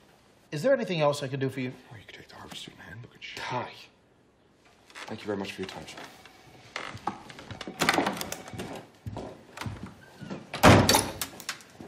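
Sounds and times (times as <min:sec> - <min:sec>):
speech: 0:00.5 - 0:03.9, 0:05.1 - 0:06.2
335-year-old doorknob breaking off a door with a clattering crack: 0:10.6 - 0:11.7.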